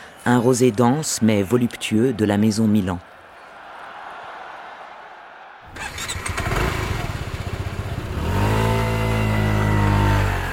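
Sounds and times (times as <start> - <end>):
speech: 0.2 - 3.2
scooter engine revving: 5.7 - 10.5.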